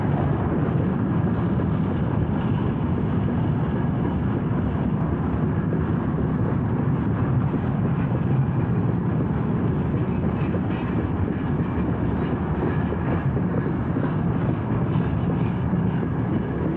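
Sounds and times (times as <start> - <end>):
Union Pacific Big Boy steam locomotive at a station: 0.0 - 16.7.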